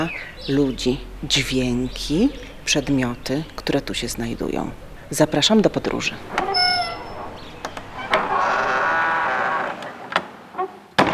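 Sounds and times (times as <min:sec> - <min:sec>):
speech: 0:00.0 - 0:06.5
gate creaking open: 0:06.1 - 0:11.1.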